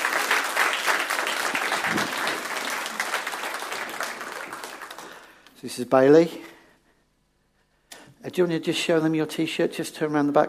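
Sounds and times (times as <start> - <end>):
audience applause: 0.0 - 5.4
speech: 5.6 - 6.5, 8.3 - 10.4.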